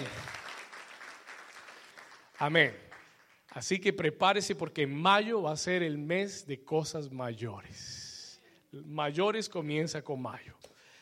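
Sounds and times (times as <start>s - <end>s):
audience applauding: 0.0s - 3.6s
speech: 2.4s - 2.9s, 3.6s - 8.0s, 8.7s - 10.7s.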